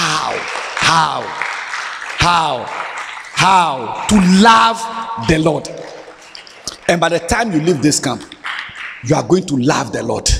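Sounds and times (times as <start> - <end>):
crowd clapping: 0.0 - 9.9
speech: 0.9 - 1.4, 2.2 - 2.8, 3.4 - 6.0, 6.9 - 8.4, 9.0 - 10.3.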